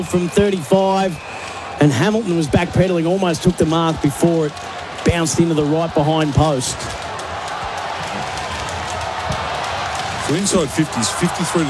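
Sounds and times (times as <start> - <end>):
speech: 0.0 - 7.0, 10.3 - 11.6
crowd cheering at an Australian rules football match involving Geelong: 0.0 - 11.6.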